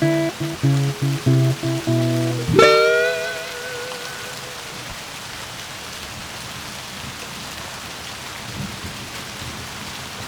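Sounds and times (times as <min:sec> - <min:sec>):
blues music: 0:00.0 - 0:04.8
light rain: 0:00.0 - 0:10.2.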